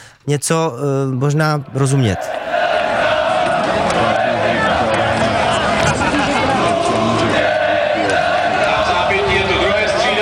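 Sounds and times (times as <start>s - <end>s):
speech: 0.2s - 2.4s
football fans chanting: 1.9s - 10.1s
laughter: 2.8s - 10.1s.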